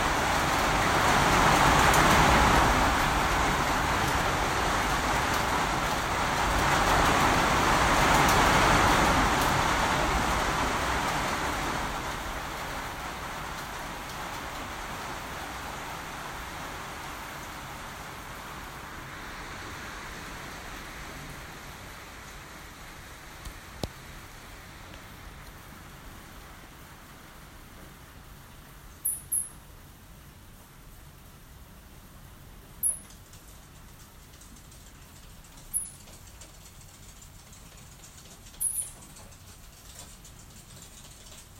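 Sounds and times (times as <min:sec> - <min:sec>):
downpour on Quirimba Island: 0:00.0 - 0:41.5
gecko on Quirimba Island: 0:29.0 - 0:29.6, 0:32.8 - 0:41.5.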